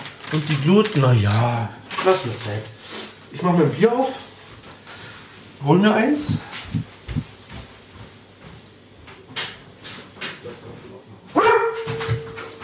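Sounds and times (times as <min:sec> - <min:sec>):
speech: 0:00.3 - 0:04.2, 0:05.6 - 0:06.9
dog barking by an ember grill: 0:11.3 - 0:12.1.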